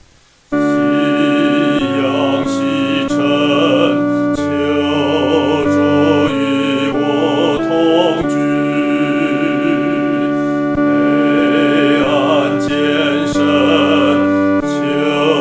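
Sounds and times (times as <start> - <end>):
solo singing, second voice: 0.5 - 15.3.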